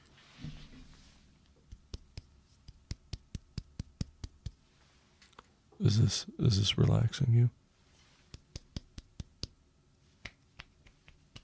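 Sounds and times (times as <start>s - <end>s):
slapping a bald head: 1.6s - 4.6s, 8.3s - 9.6s, 10.2s - 11.4s
speech: 5.8s - 7.6s.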